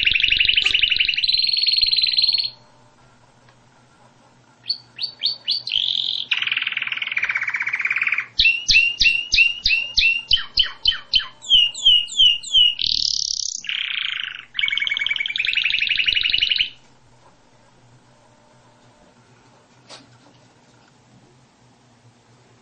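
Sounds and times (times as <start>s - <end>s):
canary singing: 0.0s - 3.0s, 4.6s - 18.4s.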